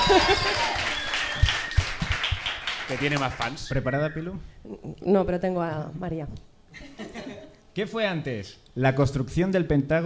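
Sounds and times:
audience applause: 0.0s - 4.1s
speech: 0.1s - 0.8s, 2.9s - 7.2s, 7.8s - 10.0s.

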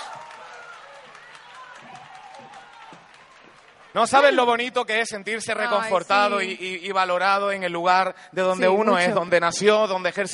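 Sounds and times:
audience applause: 0.0s - 6.7s
speech: 3.9s - 10.3s.

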